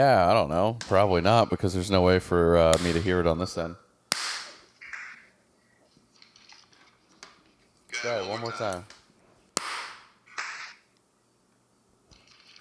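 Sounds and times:
speech: 0.0s - 3.8s, 8.0s - 9.0s
sharp crisp hand claps: 9.6s - 10.1s.

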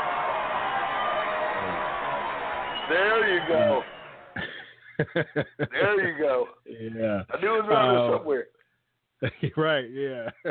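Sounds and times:
applause sound bite: 0.0s - 4.4s
laughter: 0.0s - 6.6s, 9.2s - 10.4s
speech: 2.9s - 3.9s, 5.0s - 8.6s, 9.2s - 10.4s.

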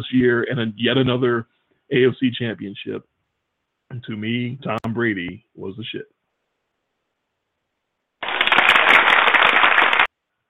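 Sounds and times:
speech: 0.0s - 3.1s, 3.9s - 6.2s
applause sound effect: 8.2s - 10.1s.

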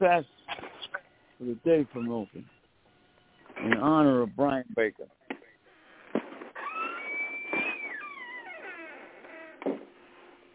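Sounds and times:
speech: 0.0s - 0.4s, 1.4s - 2.6s, 3.6s - 5.2s
squeaky door creaking: 1.8s - 2.6s, 5.7s - 9.7s.

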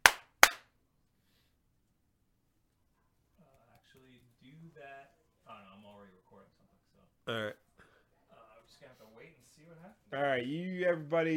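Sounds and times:
single hand clap: 0.0s - 0.6s
speech: 4.4s - 6.6s, 8.7s - 11.3s.

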